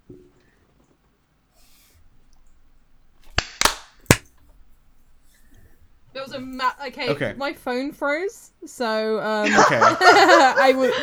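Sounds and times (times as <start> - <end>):
crowd group hand clap: 1.6 - 4.3, 9.6 - 11.0
laughter: 6.3 - 11.0
speech: 6.3 - 11.0.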